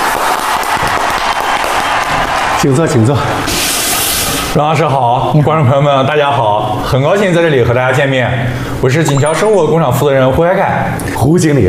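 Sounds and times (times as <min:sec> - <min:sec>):
audience applause welcoming a factory manager onto a stage: 0:00.0 - 0:02.7
speech: 0:02.6 - 0:03.7, 0:04.5 - 0:11.6.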